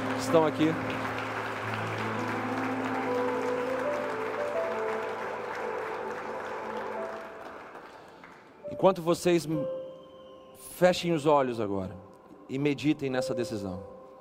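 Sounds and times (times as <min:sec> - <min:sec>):
church audience applauding: 0:00.0 - 0:08.8
speech: 0:00.2 - 0:01.0, 0:08.8 - 0:09.8, 0:10.6 - 0:13.9.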